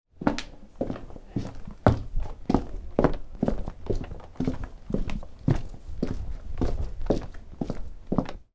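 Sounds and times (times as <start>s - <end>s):
footsteps: 0.2s - 8.5s.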